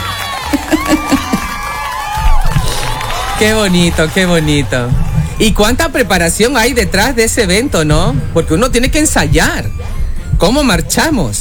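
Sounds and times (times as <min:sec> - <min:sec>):
applause and cheering: 0:00.0 - 0:05.4
laughter: 0:00.0 - 0:10.0
speech: 0:03.4 - 0:11.3.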